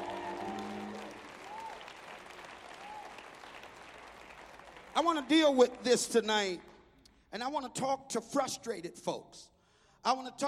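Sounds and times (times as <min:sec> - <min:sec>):
hands clapping: 0:00.0 - 0:06.8
speech: 0:05.0 - 0:06.7, 0:07.3 - 0:10.4.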